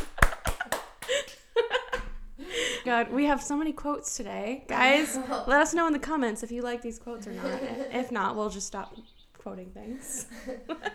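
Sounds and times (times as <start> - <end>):
hand clapping: 0.0 - 2.2
laughter: 0.0 - 2.9, 4.7 - 6.0, 7.0 - 9.0, 9.6 - 10.9
speech: 2.8 - 10.9.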